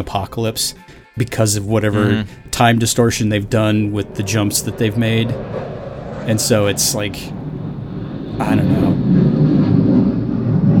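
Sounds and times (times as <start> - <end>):
speech: 0.0 - 7.4, 8.4 - 9.3
Blue Angels jets flying over during air show: 2.9 - 10.7.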